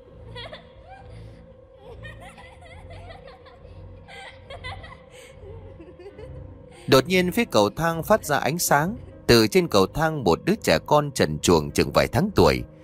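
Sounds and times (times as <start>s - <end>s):
maniacal laughter echoing through the house: 0.0s - 7.0s
speech: 6.9s - 12.8s.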